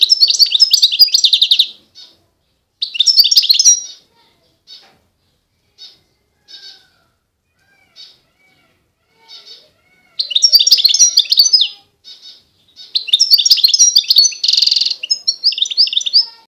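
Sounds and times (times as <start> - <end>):
European goldfinch twittering: 0.0 - 2.2, 2.8 - 4.1, 7.8 - 16.4.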